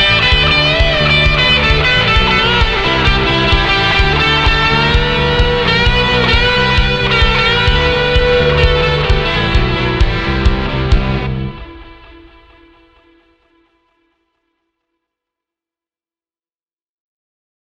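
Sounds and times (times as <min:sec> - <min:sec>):
classic tube drive distortion: 0:00.0 - 0:13.0.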